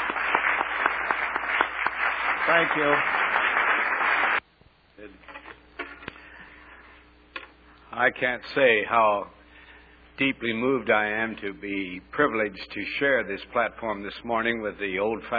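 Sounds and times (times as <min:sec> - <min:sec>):
audience applause: 0:00.0 - 0:04.4
speech: 0:02.5 - 0:03.3, 0:08.0 - 0:09.4, 0:10.2 - 0:15.3.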